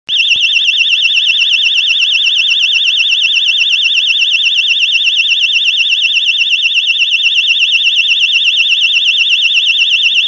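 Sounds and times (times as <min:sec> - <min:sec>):
siren: 0:00.1 - 0:10.2.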